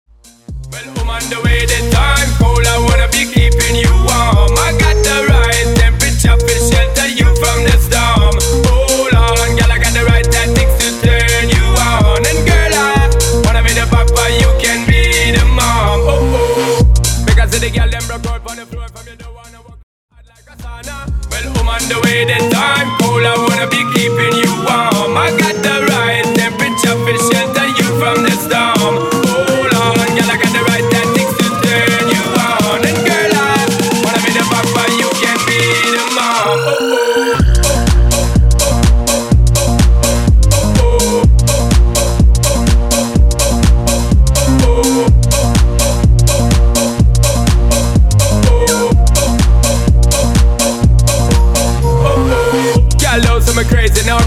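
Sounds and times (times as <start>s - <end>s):
hybrid house music mix: 0.1s - 54.2s.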